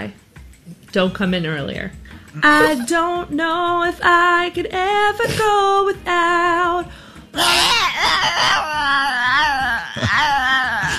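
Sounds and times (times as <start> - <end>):
speech: 0.9 - 10.9
dog howling along to a song: 7.4 - 10.9.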